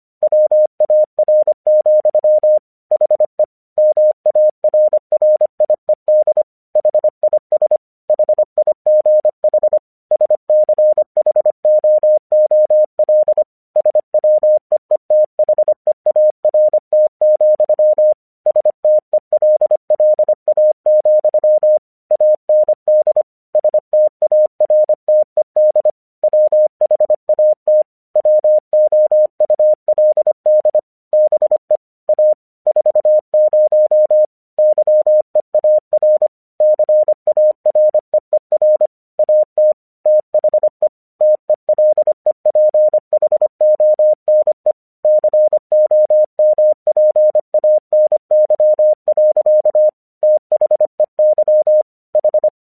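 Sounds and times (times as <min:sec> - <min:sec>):
English Morse code: 0:00.3 - 0:52.5.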